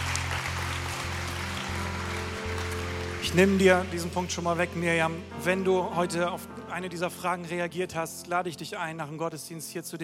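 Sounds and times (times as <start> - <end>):
audience applauding: 0.0 - 4.6
speech: 3.3 - 10.0.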